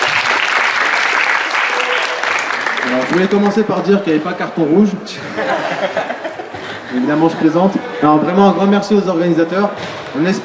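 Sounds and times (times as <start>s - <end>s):
audience applause greeting a speaker at a community gathering: 0.0s - 3.8s
speech: 2.9s - 10.4s
laughter: 5.1s - 8.7s.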